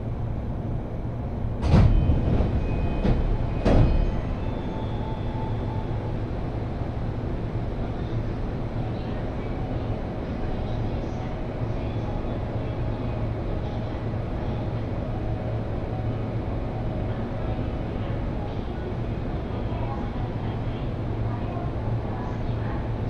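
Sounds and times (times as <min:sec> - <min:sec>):
Jōban Line local train rumble and hum from Kita-Senju toward Abiko: 0:00.0 - 0:23.0
faint voices: 0:07.8 - 0:23.0.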